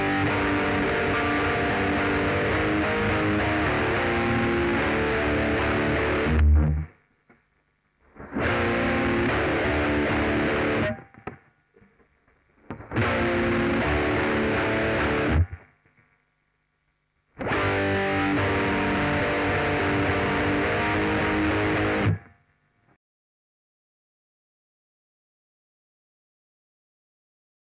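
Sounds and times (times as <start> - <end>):
saturated guitar: 0.0 - 7.4, 8.0 - 16.2, 17.4 - 23.0.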